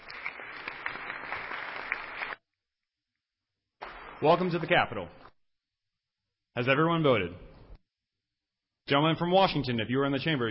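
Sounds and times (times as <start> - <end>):
applause in a state legislature chamber welcoming fourth-grade students: 0.0 - 2.4, 3.8 - 5.4
speech: 4.2 - 5.2, 6.6 - 7.5, 8.9 - 10.4.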